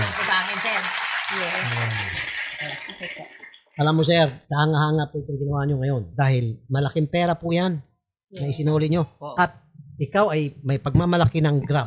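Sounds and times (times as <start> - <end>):
group applauding a woman for returning a large sum of money: 0.0 - 4.4
speech: 0.5 - 11.8.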